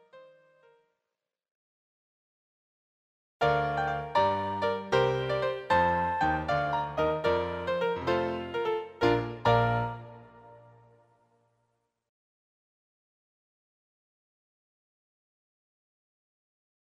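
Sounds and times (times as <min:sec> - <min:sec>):
minuet and musette music: 0:03.4 - 0:11.4.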